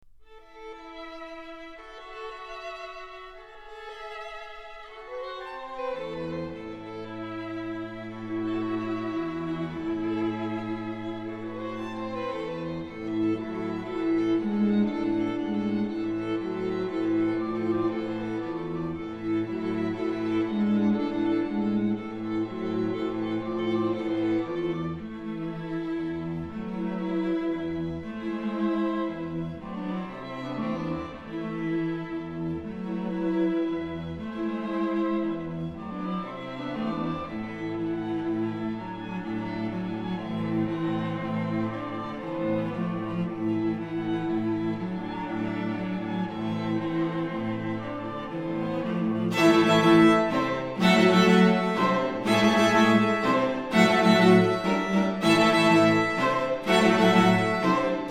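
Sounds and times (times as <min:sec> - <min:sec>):
string quartet playing: 0:00.2 - 0:58.1.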